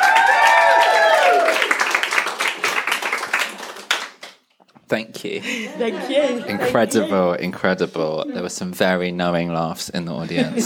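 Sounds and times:
audience applause and cheers for a performer: 0.0s - 4.2s
speech: 4.9s - 10.6s
laughter: 5.3s - 7.6s, 10.1s - 10.6s.

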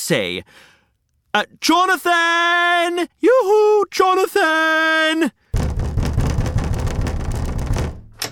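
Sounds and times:
speech: 0.1s - 0.7s, 1.3s - 5.4s
knock on a door: 5.6s - 8.2s.

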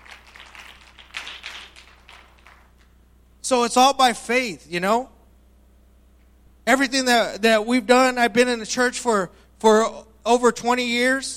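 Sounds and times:
audience clapping: 0.0s - 3.0s
speech: 3.5s - 5.2s, 6.7s - 11.3s.

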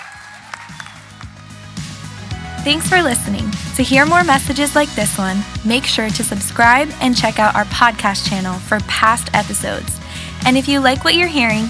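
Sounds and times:
audience applause: 0.0s - 1.3s
speech: 2.6s - 11.6s.

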